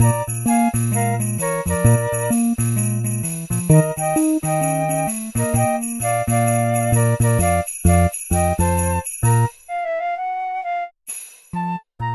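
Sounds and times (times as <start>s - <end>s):
jazz arrangement of a Christmas song: 0.0s - 10.9s.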